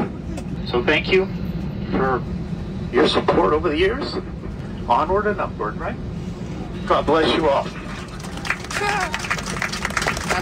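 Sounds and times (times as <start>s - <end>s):
speech: 0.7s - 6.1s, 6.9s - 7.8s, 8.8s - 9.3s
scattered applause from a small crowd: 7.8s - 10.4s
tonal whoop: 8.7s - 9.3s.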